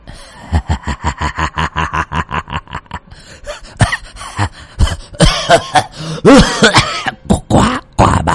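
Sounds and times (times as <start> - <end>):
laughter: 0.4 - 3.0
coughing fit: 3.8 - 8.2.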